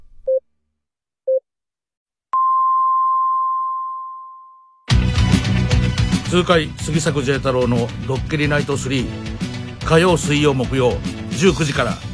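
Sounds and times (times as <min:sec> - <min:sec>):
radio time signal beeps: 0:02.4 - 0:04.8
music: 0:04.9 - 0:12.1
speech: 0:06.3 - 0:12.1.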